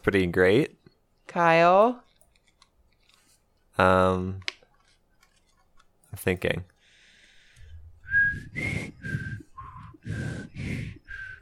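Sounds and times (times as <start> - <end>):
speech: 0.0 - 2.0, 3.8 - 4.5, 6.2 - 6.7, 8.6 - 9.2
person whistling a tune: 8.0 - 11.4.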